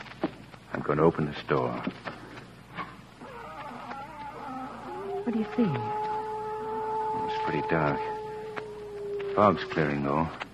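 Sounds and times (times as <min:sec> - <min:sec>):
speech: 0:00.8 - 0:02.0, 0:05.3 - 0:06.0, 0:07.2 - 0:08.2, 0:09.4 - 0:10.5
cat howling: 0:03.2 - 0:10.5.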